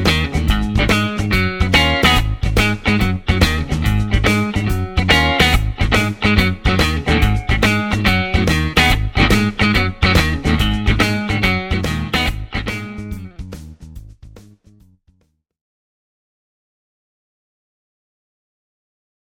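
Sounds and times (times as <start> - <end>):
clean mid-position Stratocaster electric guitar: 0.0 - 13.8.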